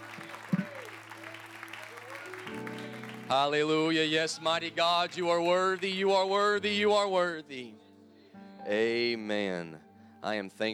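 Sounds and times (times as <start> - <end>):
audience clapping hands: 0.0 - 6.6
speech: 3.3 - 7.8, 8.7 - 10.7.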